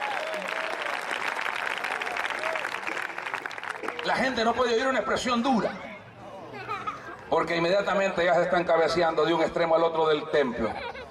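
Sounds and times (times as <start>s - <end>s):
audience applause: 0.0s - 4.3s
speech: 4.0s - 5.9s, 7.3s - 10.9s.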